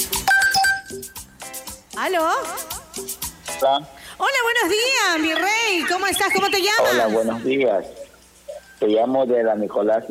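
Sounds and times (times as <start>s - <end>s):
phone ringtone for an incoming call to a radio show: 0.2s - 1.2s, 5.2s - 7.4s
speech: 3.6s - 8.0s, 8.8s - 10.0s.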